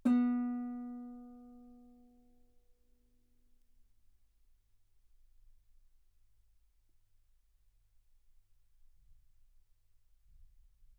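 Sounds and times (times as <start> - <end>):
guitar B3 note on B string played fortissimo: 0.0 - 1.8.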